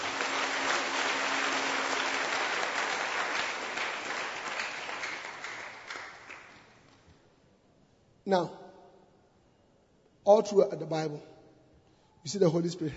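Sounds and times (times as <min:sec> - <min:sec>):
audience applause: 0:00.0 - 0:06.7
speech: 0:08.3 - 0:08.6, 0:10.3 - 0:11.3, 0:12.2 - 0:12.9.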